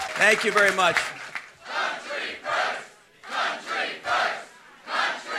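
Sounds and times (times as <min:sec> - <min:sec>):
speech: 0:00.2 - 0:01.1
crowd chanting slogan: 0:01.6 - 0:05.3.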